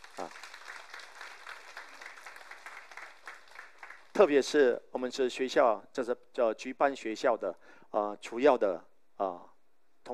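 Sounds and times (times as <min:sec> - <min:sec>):
church congregation applauding the teachers: 0:00.0 - 0:04.4
speech: 0:04.2 - 0:10.1.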